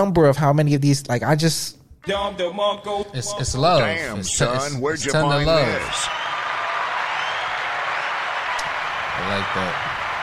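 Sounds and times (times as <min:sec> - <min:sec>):
speech: 0:00.0 - 0:06.3, 0:09.3 - 0:09.9
hands clapping: 0:05.8 - 0:10.2.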